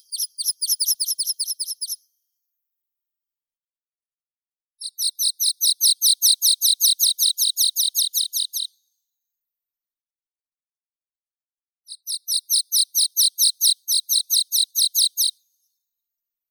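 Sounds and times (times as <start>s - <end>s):
water pipit Anthus spinoletta: 0.0s - 2.2s, 4.8s - 9.0s, 11.9s - 15.7s.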